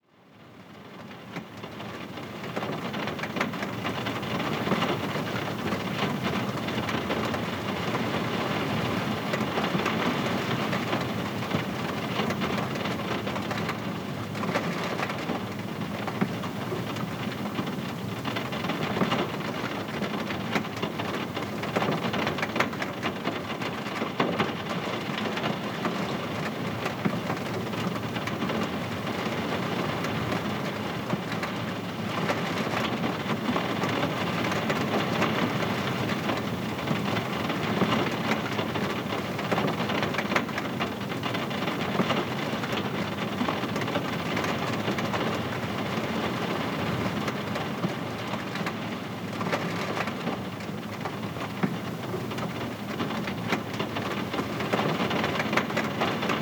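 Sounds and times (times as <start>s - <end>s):
ambient rain: 0.2s - 56.3s.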